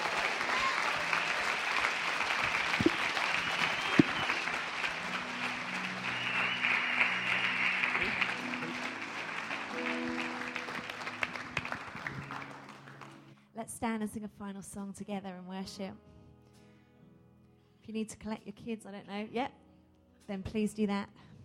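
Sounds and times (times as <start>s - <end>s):
church congregation applauding to welcome new members: 0.0s - 13.4s
speech: 13.8s - 16.1s, 17.9s - 19.6s, 20.3s - 21.3s.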